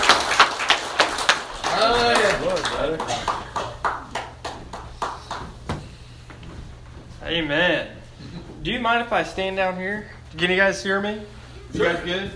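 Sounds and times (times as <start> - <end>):
audience applause: 0.0 - 5.6
speech: 1.8 - 3.3, 8.8 - 12.3.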